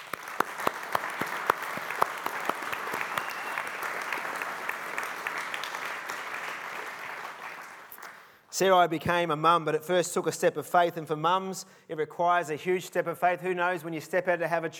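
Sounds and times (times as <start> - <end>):
audience applause: 0.0 - 8.3
speech: 8.6 - 14.7.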